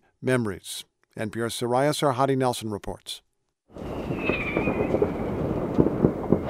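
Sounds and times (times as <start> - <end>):
speech: 0.2 - 3.3
high whistling tone: 3.8 - 5.4
fireworks crackling: 3.8 - 6.4
sharp bangs: 3.8 - 6.4.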